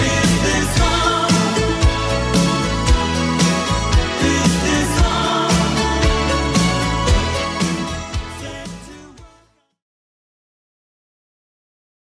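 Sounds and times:
80s Redrum drum machine beat at 114 bpm: 0.0 - 9.4.

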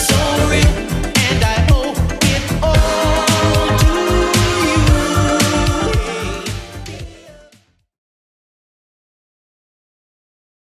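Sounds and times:
80s style music: 0.0 - 7.6.

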